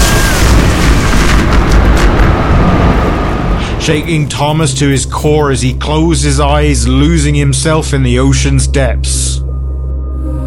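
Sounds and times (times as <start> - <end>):
deafening clap of thunder: 0.0 - 3.9
speech: 3.9 - 9.4.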